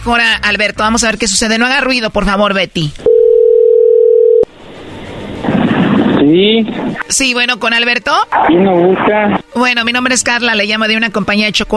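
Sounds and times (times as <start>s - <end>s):
speech: 0.0s - 3.1s, 6.3s - 11.7s
telephone dial tone: 3.1s - 4.5s
low hiss and rustling telephone line noise: 4.5s - 11.7s.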